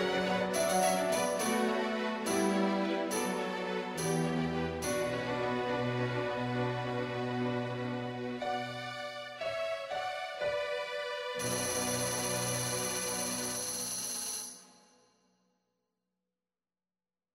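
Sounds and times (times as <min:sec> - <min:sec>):
junior string ensemble playing a Christmas carol: 0:00.0 - 0:13.8.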